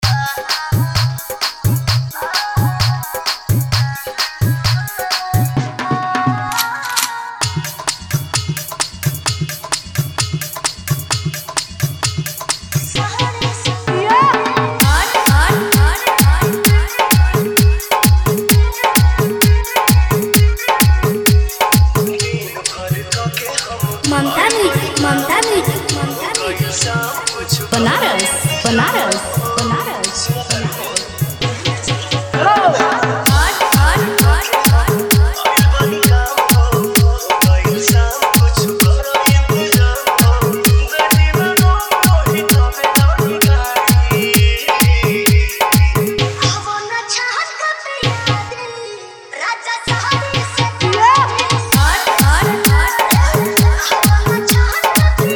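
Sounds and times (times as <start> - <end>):
Bhojpuri DJ remix song: 0.0 - 55.3.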